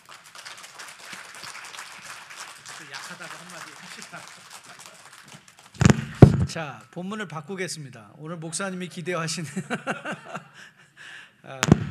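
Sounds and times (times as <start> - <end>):
audience applause: 0.0 - 6.4
laughter: 2.8 - 5.3, 9.4 - 10.8
speech: 2.8 - 5.4, 6.5 - 10.8, 11.4 - 11.8.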